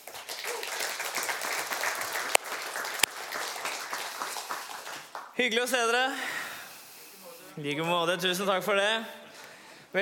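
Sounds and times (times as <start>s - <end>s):
audience applauding worship team: 0.0s - 5.4s
speech: 5.4s - 6.4s, 7.6s - 9.2s.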